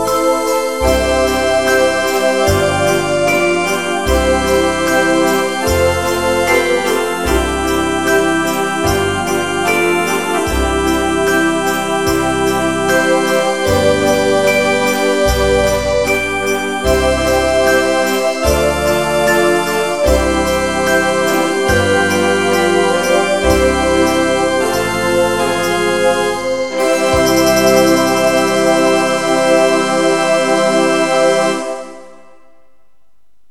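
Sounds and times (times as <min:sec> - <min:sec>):
minuet on music box: 0:00.0 - 0:32.4.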